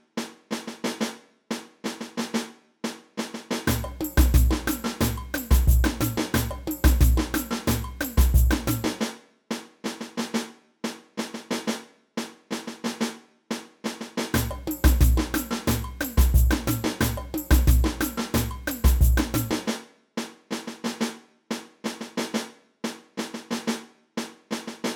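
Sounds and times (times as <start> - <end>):
caixa snare drum: 0.0 - 24.9
samba music: 3.7 - 9.2, 14.4 - 19.8.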